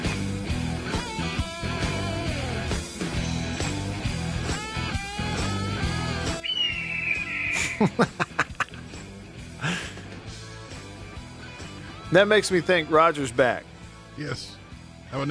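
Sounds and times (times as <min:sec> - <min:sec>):
music: 0:00.0 - 0:15.2
red-tailed hawk screaming: 0:06.4 - 0:08.6
laughter: 0:07.5 - 0:08.9, 0:09.6 - 0:10.1
speech: 0:07.8 - 0:08.2, 0:12.1 - 0:15.2.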